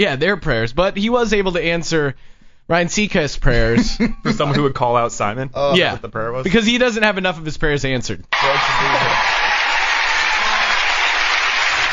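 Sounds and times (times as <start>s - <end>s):
speech: 0.0s - 9.4s
audience applause: 8.4s - 11.9s.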